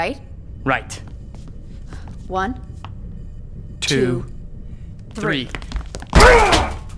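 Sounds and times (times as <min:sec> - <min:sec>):
speech: 0:00.0 - 0:01.1, 0:02.3 - 0:02.7, 0:03.8 - 0:04.4, 0:05.2 - 0:06.5
body slamming into a door: 0:06.1 - 0:06.9.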